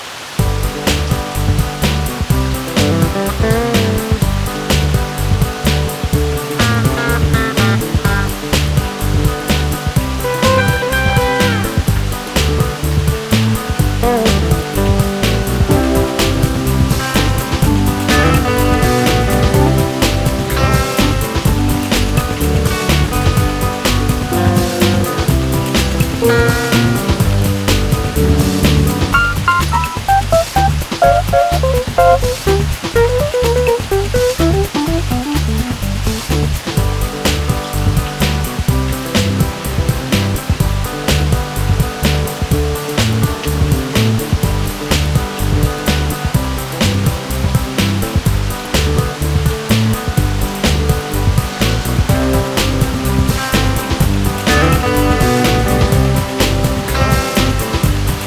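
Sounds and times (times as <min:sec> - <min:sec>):
heavy rain: 0:00.0 - 0:58.2
bike music theme: 0:00.4 - 0:36.2, 0:49.0 - 0:58.2.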